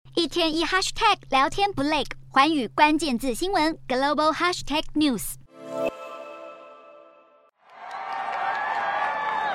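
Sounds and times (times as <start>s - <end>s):
speech: 0.2s - 5.9s
parade crowd cheering at the Macy's Thanksgiving Day Parade: 7.6s - 9.5s.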